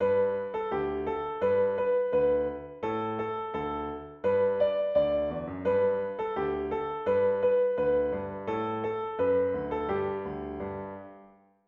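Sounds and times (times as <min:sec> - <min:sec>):
piano: 0:00.0 - 0:11.6.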